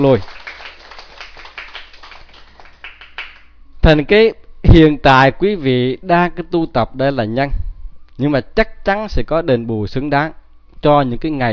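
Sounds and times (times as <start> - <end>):
speech: 0.0 - 0.4, 3.9 - 11.5
crowd clapping: 0.0 - 3.5.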